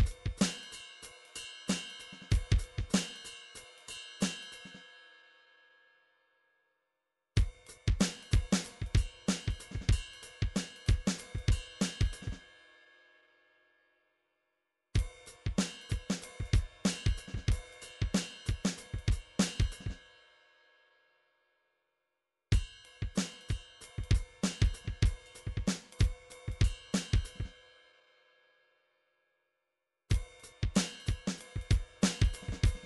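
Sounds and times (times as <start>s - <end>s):
MIDI drums: 0.0s - 0.8s, 1.7s - 3.2s, 7.4s - 12.4s, 15.0s - 20.0s, 22.5s - 27.5s, 30.1s - 32.8s.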